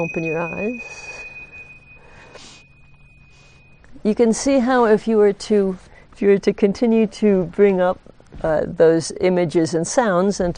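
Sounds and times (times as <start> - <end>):
speech: 0.0 - 1.1, 3.9 - 10.5
bell rung to end meditation: 0.0 - 4.8.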